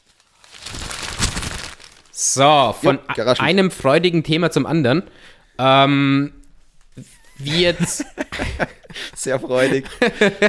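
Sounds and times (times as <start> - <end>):
newspaper rustling: 0.0 - 2.5
speech: 2.2 - 6.4, 7.0 - 10.4
laughter: 7.0 - 10.4.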